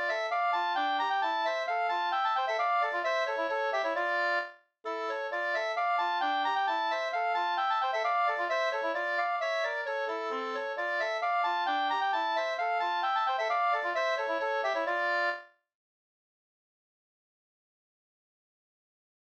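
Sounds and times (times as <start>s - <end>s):
two-part polska folk dance tune: 0.0s - 15.4s.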